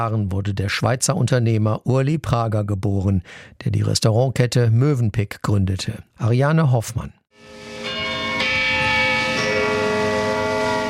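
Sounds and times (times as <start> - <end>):
speech: 0.0 - 7.6
St. Peter tower church bell in Zürich striking noon: 7.4 - 10.8.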